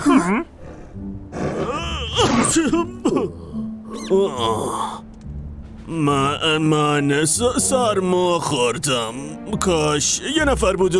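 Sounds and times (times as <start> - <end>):
speech: 0.1 - 5.0, 5.9 - 10.9
loud sneeze of a lion: 1.3 - 3.2.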